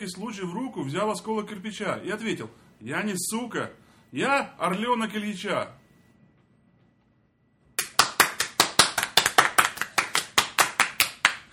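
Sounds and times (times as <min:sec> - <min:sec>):
speech: 0:00.0 - 0:05.8
applause turning into ovation: 0:07.8 - 0:11.5.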